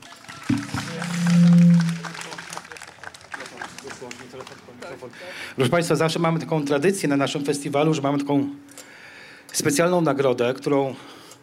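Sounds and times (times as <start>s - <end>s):
audience applause: 0.0s - 5.4s
loud low droning tone: 0.5s - 2.6s
speech: 5.6s - 8.8s, 9.5s - 11.2s.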